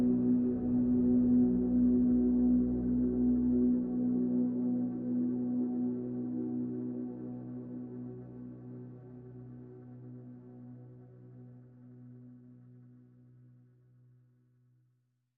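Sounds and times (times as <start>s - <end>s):
synth pads: 0.0s - 11.6s.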